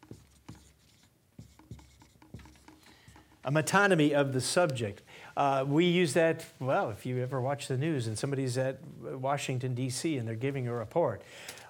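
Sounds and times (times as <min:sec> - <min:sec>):
pen scratching while writing: 0:00.0 - 0:02.9
speech: 0:03.4 - 0:11.6.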